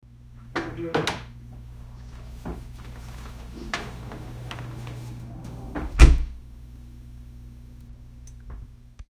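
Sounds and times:
door opening: 0:00.5 - 0:06.4.

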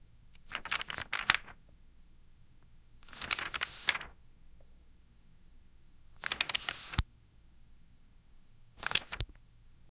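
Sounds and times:
magazine or newspaper pages flipping: 0:00.4 - 0:01.6, 0:03.0 - 0:04.2, 0:06.2 - 0:07.0, 0:08.8 - 0:09.3.

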